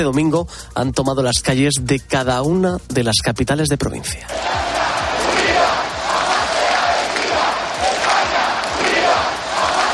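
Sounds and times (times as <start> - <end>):
speech: 0.0 - 4.8
large protest crowd chanting a slogan in unison: 4.3 - 9.9.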